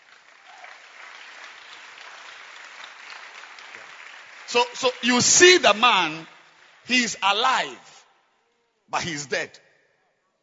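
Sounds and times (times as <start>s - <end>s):
audience clapping hands: 0.0s - 7.9s
speech: 4.5s - 6.3s, 6.9s - 8.0s, 8.9s - 9.6s.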